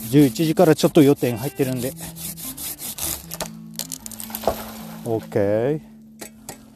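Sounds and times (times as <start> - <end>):
sawing through a lacquer tree: 0.0 - 3.5
speech: 0.1 - 2.2, 5.0 - 5.9
lacquer tree cracking: 3.3 - 5.4.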